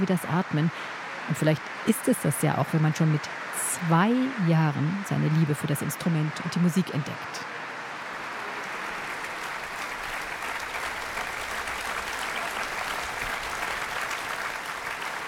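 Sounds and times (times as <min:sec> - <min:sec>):
speech: 0:00.0 - 0:07.6
enthusiastic concert audience applause in church: 0:08.1 - 0:15.2.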